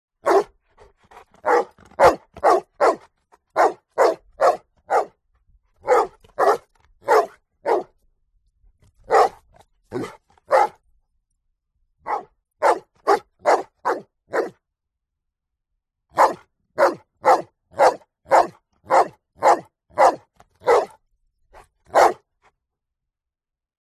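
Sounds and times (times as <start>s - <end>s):
dog barking: 0.2s - 5.2s, 5.8s - 7.9s, 9.0s - 10.8s, 12.0s - 14.6s, 16.1s - 21.0s, 21.9s - 22.2s.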